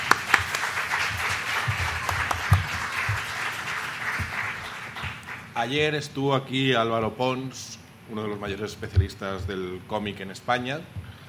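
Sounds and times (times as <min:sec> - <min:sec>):
audience applauding three speakers after a round-table discussion: 0:00.0 - 0:05.6
speech: 0:05.6 - 0:11.0.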